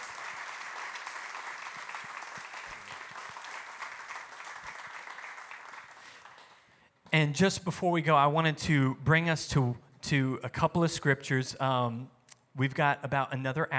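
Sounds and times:
audience applause: 0:00.0 - 0:06.6
speech: 0:07.2 - 0:13.7.

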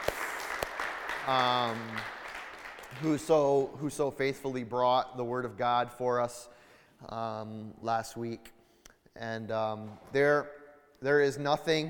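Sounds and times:
round of applause: 0:00.0 - 0:03.6
speech: 0:01.3 - 0:02.2, 0:02.9 - 0:08.6, 0:09.2 - 0:11.8.

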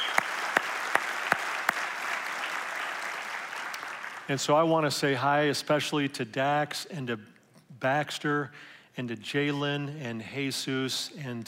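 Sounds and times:
round of applause: 0:00.0 - 0:04.3
speech: 0:04.3 - 0:11.4.

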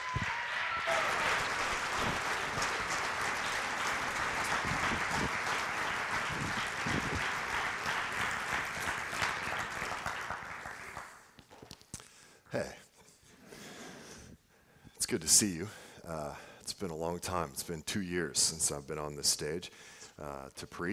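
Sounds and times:
audience applause welcoming a preacher: 0:00.0 - 0:11.2
speech: 0:15.2 - 0:20.9.

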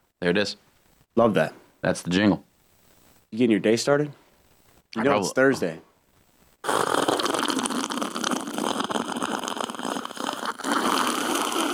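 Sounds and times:
speech: 0:00.2 - 0:02.5, 0:03.3 - 0:04.2, 0:04.9 - 0:05.9
long loud slurping sip of a drink: 0:06.6 - 0:11.7.

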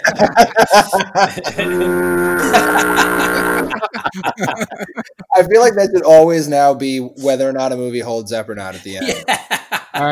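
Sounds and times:
laughter: 0:00.0 - 0:05.4, 0:08.7 - 0:10.0
speech: 0:00.1 - 0:10.0
foghorn blast: 0:01.6 - 0:03.8.

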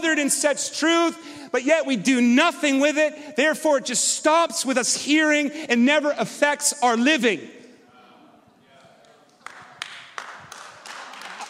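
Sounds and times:
speech: 0:00.1 - 0:07.6
people clapping: 0:08.7 - 0:11.4.

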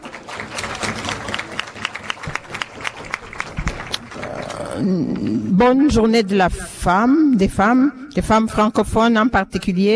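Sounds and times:
audience applause: 0:00.0 - 0:04.8
speech: 0:04.8 - 0:09.9.

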